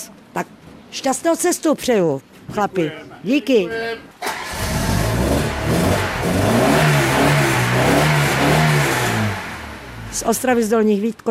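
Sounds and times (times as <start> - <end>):
speech: 0.4 - 4.1, 10.2 - 11.2
vintage car engine starting and revving: 4.2 - 10.7.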